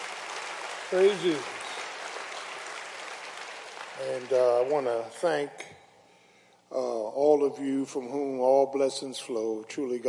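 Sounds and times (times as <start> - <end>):
audience hand clapping: 0.0 - 5.2
speech: 0.9 - 1.6, 4.0 - 5.8, 6.7 - 10.0.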